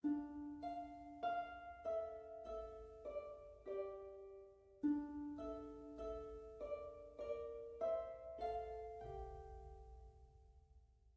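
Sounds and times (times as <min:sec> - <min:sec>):
harp: 0:00.0 - 0:10.6.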